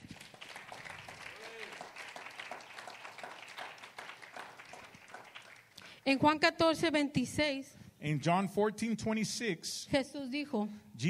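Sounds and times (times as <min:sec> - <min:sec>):
applause in a Spanish-language church service: 0:00.0 - 0:06.0
speech: 0:06.0 - 0:11.0.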